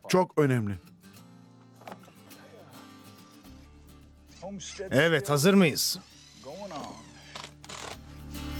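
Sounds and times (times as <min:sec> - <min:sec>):
speech: 0:00.1 - 0:00.9, 0:04.4 - 0:07.1
screw being driven in while insulating a water tank: 0:06.0 - 0:08.0.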